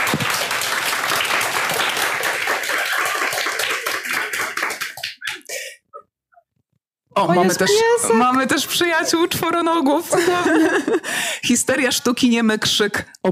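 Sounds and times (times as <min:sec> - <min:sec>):
room full of people applauding: 0:00.0 - 0:05.6
laughter: 0:02.4 - 0:05.6, 0:07.4 - 0:11.1
speech: 0:07.2 - 0:13.3.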